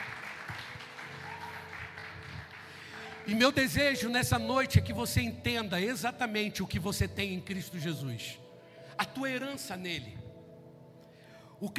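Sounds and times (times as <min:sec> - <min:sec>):
audience applause: 0:00.0 - 0:03.4
speech: 0:03.3 - 0:08.4, 0:09.1 - 0:10.2, 0:11.6 - 0:11.7.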